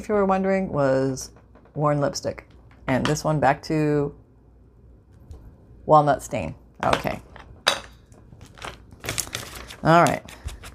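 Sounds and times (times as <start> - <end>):
speech: 0.0 - 4.2, 5.9 - 7.3, 9.8 - 10.4
paper being crumpled: 8.4 - 10.7.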